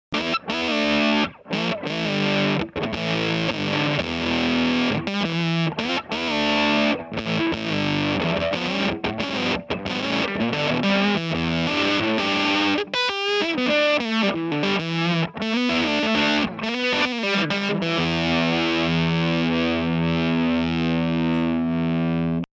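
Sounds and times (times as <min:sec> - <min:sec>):
MXR gain pedal with variac at 6V: 0:00.1 - 0:22.5.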